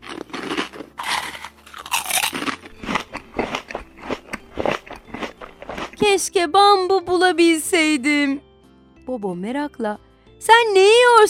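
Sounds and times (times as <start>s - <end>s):
bear eating from a jar: 0.0s - 6.0s
speech: 6.1s - 8.4s, 9.1s - 11.2s.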